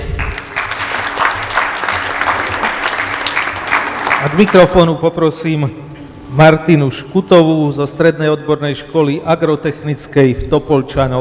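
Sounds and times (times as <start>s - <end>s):
audience applause: 0.0s - 4.8s
speech: 4.2s - 11.1s.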